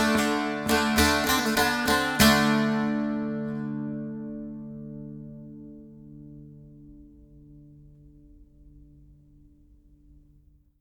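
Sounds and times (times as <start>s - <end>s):
solo saz playing: 0.0s - 6.4s.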